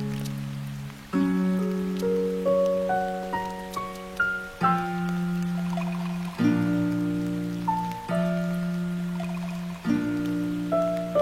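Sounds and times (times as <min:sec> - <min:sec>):
slow gentle music with low chords and a light melody: 0:00.0 - 0:11.2
soft steady patter of rain: 0:00.0 - 0:11.2.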